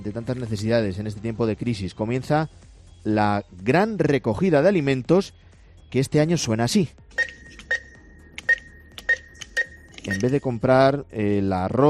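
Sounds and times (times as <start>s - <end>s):
speech: 0.0s - 7.4s, 10.1s - 11.8s
supermarket checkout scanner beeps at the till: 7.1s - 10.6s.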